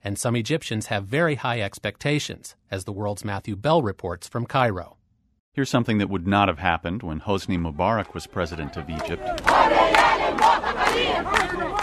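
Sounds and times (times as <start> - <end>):
speech: 0.0 - 5.0, 5.6 - 11.8
demonstrators shouting at palace gate: 8.0 - 11.8.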